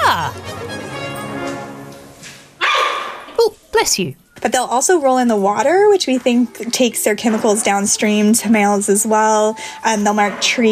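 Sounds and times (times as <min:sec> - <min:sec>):
giant panda calling: 0:02.6 - 0:03.2
speech: 0:03.9 - 0:10.6.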